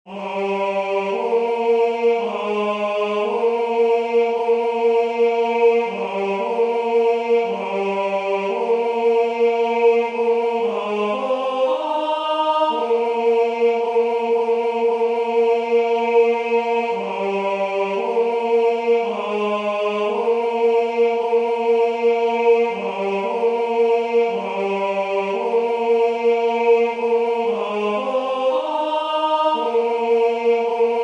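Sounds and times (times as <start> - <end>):
tenor singing: 0.1 - 31.0.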